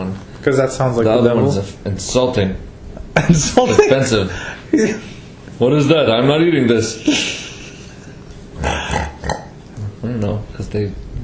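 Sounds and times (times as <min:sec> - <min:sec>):
speech: 0:00.2 - 0:07.4, 0:10.1 - 0:11.2
imitated pig oink: 0:08.6 - 0:10.1.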